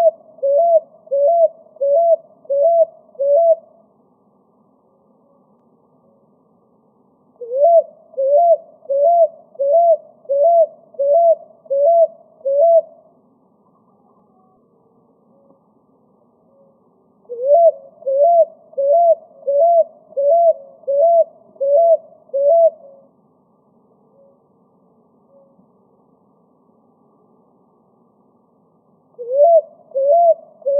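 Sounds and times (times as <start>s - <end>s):
picui ground dove singing: 0.0s - 3.6s, 7.4s - 13.0s, 16.5s - 23.1s, 29.2s - 30.7s.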